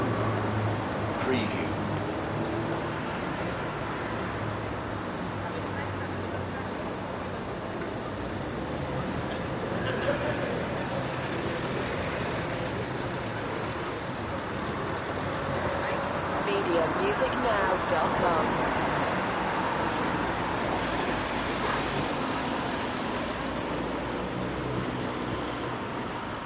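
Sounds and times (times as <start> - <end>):
city ambience in Germany: 0.0 - 26.4.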